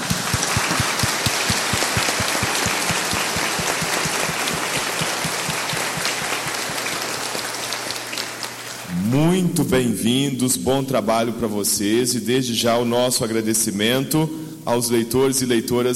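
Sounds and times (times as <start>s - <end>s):
audience applauding: 0.0s - 9.0s
speech: 9.1s - 15.9s.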